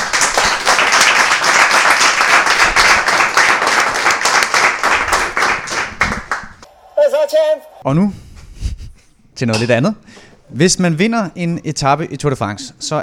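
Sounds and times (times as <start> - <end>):
live audience applause for the winners: 0.0 - 6.6
speech: 7.8 - 8.2, 9.4 - 13.0.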